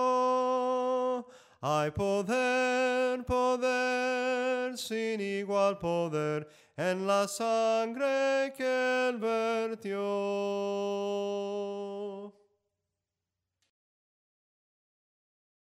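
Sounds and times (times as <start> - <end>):
soprano singing hymns: 0.0 - 12.4.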